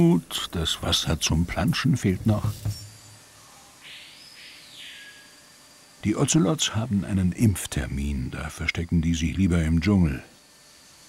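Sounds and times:
speech: 0:00.0 - 0:02.8, 0:06.0 - 0:10.3
birds chirping: 0:00.0 - 0:08.1.

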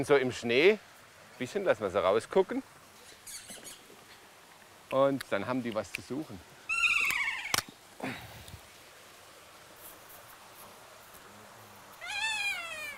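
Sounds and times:
speech: 0:00.0 - 0:02.8, 0:04.9 - 0:06.5, 0:08.0 - 0:08.3
outdoor hiss: 0:00.0 - 0:12.9
kea parrots screeching: 0:03.0 - 0:03.8, 0:06.7 - 0:07.7, 0:12.0 - 0:12.9.

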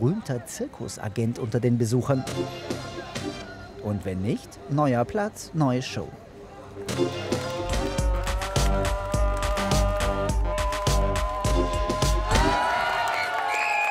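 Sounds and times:
speech: 0:00.0 - 0:02.9, 0:03.8 - 0:06.2, 0:06.8 - 0:07.4
audience applause: 0:07.3 - 0:13.8.

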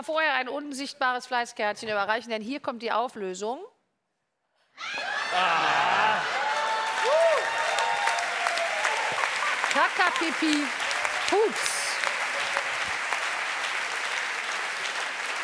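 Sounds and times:
speech: 0:00.0 - 0:03.7, 0:04.8 - 0:06.3, 0:09.8 - 0:11.7
laughter: 0:04.9 - 0:06.6, 0:09.0 - 0:10.6
applause: 0:05.8 - 0:15.4.

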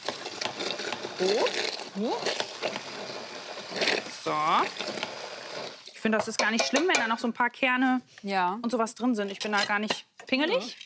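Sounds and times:
blender pureeing frozen berries: 0:00.2 - 0:05.9
speech: 0:01.2 - 0:03.1, 0:03.7 - 0:05.2, 0:06.0 - 0:10.8.

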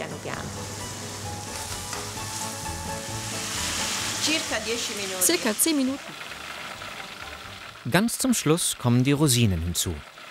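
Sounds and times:
food frying slowly in a pan over a low flame: 0:00.0 - 0:07.9
speech: 0:04.2 - 0:06.2, 0:07.9 - 0:10.1.

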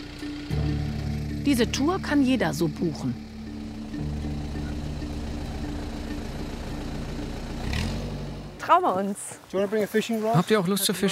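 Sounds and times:
motorboat engine idling on a fjord: 0:00.0 - 0:08.6
speech: 0:01.5 - 0:03.3, 0:08.7 - 0:11.1.

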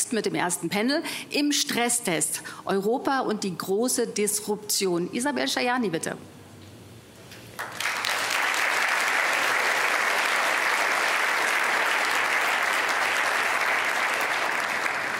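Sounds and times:
speech: 0:00.1 - 0:06.4
audience applause in a hall: 0:07.6 - 0:15.1.

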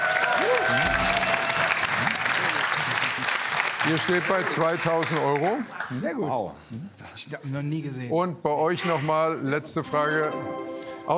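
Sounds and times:
audience applause: 0:00.0 - 0:06.0
speech: 0:03.8 - 0:11.1.

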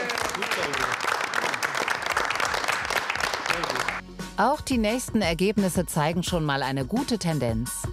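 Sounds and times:
applause: 0:00.0 - 0:04.0
speech: 0:04.4 - 0:07.8.

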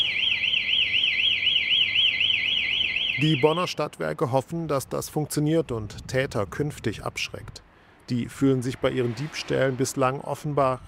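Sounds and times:
charging station anti-theft alarm sounding: 0:00.0 - 0:03.8
speech: 0:03.2 - 0:10.8.

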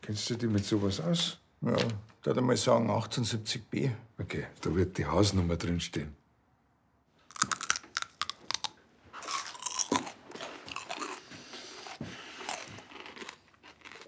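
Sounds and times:
speech: 0:00.0 - 0:06.2
loud crunchy chewing: 0:07.3 - 0:14.0.

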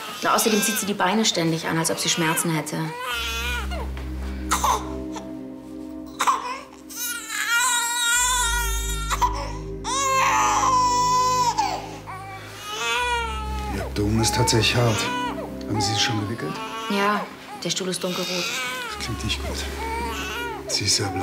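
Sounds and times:
baby crying: 0:00.0 - 0:03.9, 0:04.5 - 0:05.3, 0:06.1 - 0:21.2
speech: 0:00.2 - 0:03.8, 0:14.2 - 0:20.0, 0:20.7 - 0:21.2.

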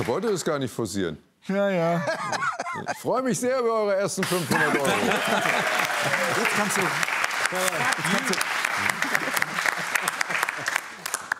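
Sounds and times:
speech: 0:00.0 - 0:08.4
laughter: 0:01.9 - 0:03.1, 0:04.2 - 0:06.9, 0:07.5 - 0:11.2
clapping: 0:04.9 - 0:11.3.

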